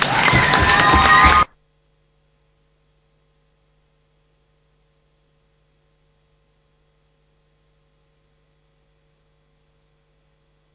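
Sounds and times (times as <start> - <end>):
audience applause: 0.0 - 1.6.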